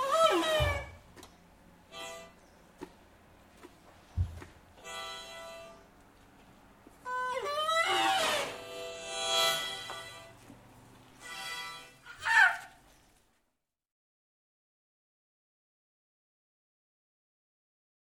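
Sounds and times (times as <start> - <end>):
wind instrument: 0.0 - 1.0, 7.1 - 10.4, 11.2 - 12.7.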